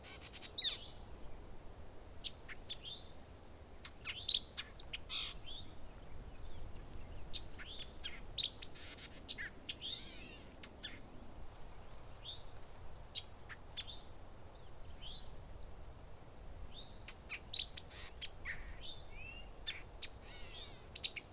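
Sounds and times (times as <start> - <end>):
birds: 0.0 - 1.5, 2.2 - 21.3.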